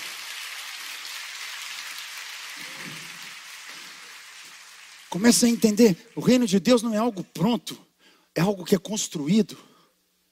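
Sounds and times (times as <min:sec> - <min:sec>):
audience applause: 0:00.0 - 0:06.5
speech: 0:05.1 - 0:09.7.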